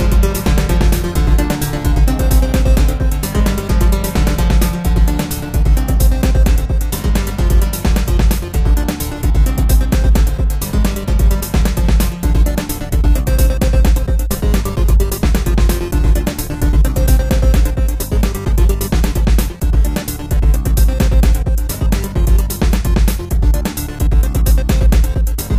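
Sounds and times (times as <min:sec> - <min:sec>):
ambience remix: 0:00.0 - 0:25.5.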